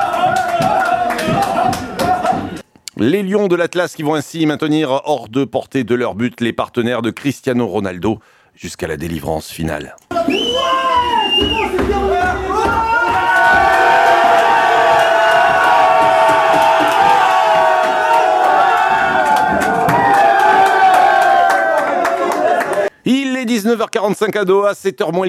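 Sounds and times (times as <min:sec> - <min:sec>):
football supporters cheering and chanting in a stadium: 0:00.0 - 0:02.6, 0:10.1 - 0:22.9
shouts: 0:00.0 - 0:02.6, 0:10.1 - 0:22.9
speech: 0:03.0 - 0:12.4, 0:23.5 - 0:25.2
shrill whistles: 0:10.1 - 0:11.8.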